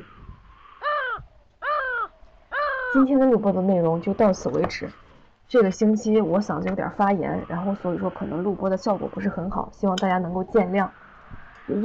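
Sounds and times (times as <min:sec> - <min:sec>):
crow cawing: 0:00.0 - 0:03.2
faint steady hum: 0:00.0 - 0:11.8
speech: 0:02.9 - 0:11.0, 0:11.7 - 0:11.8.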